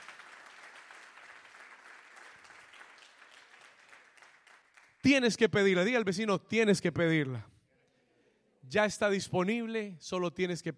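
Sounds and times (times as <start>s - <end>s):
audience applauding: 0.0s - 5.0s
speech: 5.0s - 7.5s, 8.7s - 10.7s.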